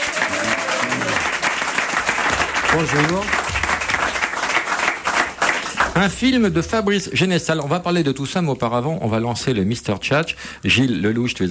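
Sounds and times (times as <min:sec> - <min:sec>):
studio audience applause greeting guests on a French television show: 0:00.0 - 0:06.7
speech: 0:02.8 - 0:03.4, 0:06.0 - 0:11.4.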